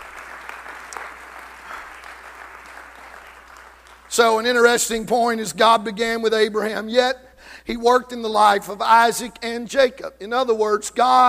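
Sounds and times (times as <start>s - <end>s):
audience clapping hands: 0.0s - 4.8s
speech: 4.1s - 11.2s.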